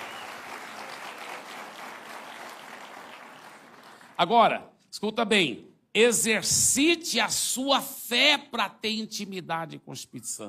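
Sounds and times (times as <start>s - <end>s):
strong round of applause: 0.0s - 4.2s
speech: 4.2s - 10.4s.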